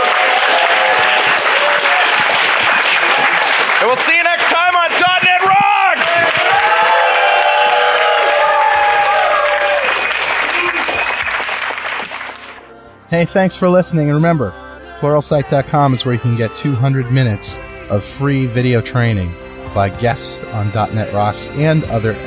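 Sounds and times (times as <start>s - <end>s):
audience applause: 0.0s - 12.6s
speech: 3.9s - 4.4s, 13.1s - 22.2s.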